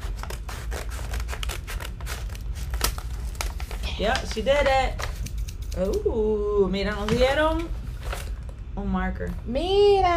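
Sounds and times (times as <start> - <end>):
poorly cutting scissors snipping: 0.0 - 6.1
speech: 4.0 - 5.1, 5.8 - 7.8, 8.8 - 10.1.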